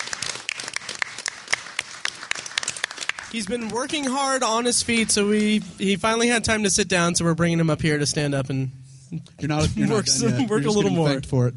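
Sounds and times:
crowd applauding: 0:00.0 - 0:05.4
speech: 0:03.3 - 0:11.5.

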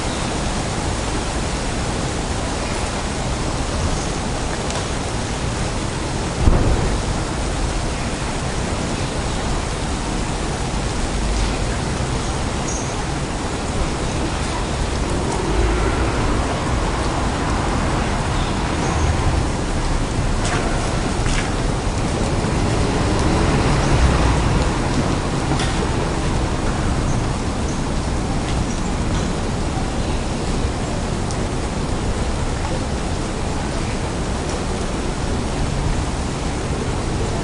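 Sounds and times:
steady rain on a street in Amsterdam: 0:00.0 - 0:37.4
sharp thump: 0:06.4 - 0:07.2.

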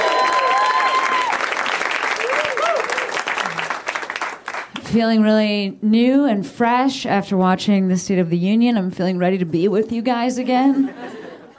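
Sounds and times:
cheers and whoops: 0:00.0 - 0:03.2
crowd applause: 0:00.0 - 0:04.7
speech: 0:04.9 - 0:11.5
laughter: 0:10.5 - 0:11.5.

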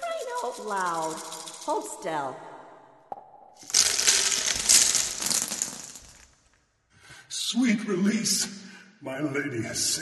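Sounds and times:
speech: 0:00.4 - 0:02.5, 0:07.5 - 0:09.9
small hard candies clattering out of a candy machine: 0:03.6 - 0:06.4.

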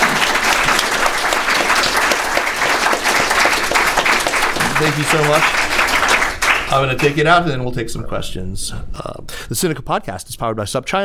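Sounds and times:
audience round of applause: 0:00.0 - 0:07.3
speech: 0:04.8 - 0:05.8, 0:06.7 - 0:11.0.

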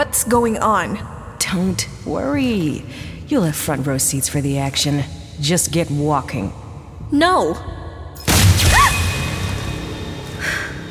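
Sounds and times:
speech: 0:00.0 - 0:07.8
warning gunshot: 0:08.3 - 0:09.9.

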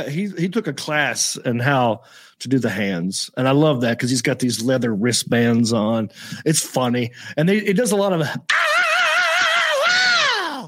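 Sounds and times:
speech: 0:00.0 - 0:08.6
person screaming: 0:08.5 - 0:10.6.

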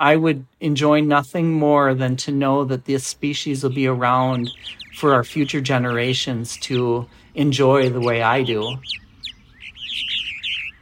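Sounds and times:
speech: 0:00.0 - 0:09.0
Purple Martin warbling calls: 0:03.2 - 0:10.8.

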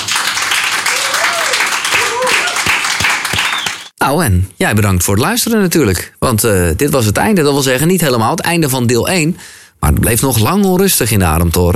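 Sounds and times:
audience applause: 0:00.0 - 0:03.9
speech: 0:04.1 - 0:11.7.

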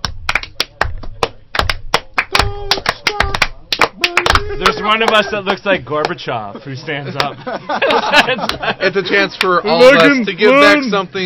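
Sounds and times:
slow sharp hand claps: 0:00.0 - 0:05.3, 0:08.4 - 0:08.6
laughter: 0:04.0 - 0:09.5
speech: 0:04.6 - 0:11.2.

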